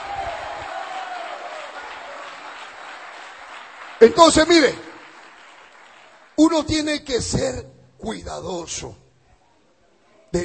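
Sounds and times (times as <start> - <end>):
audience clapping and praising: 0.0 - 6.9
speech: 4.0 - 4.9, 6.4 - 9.0.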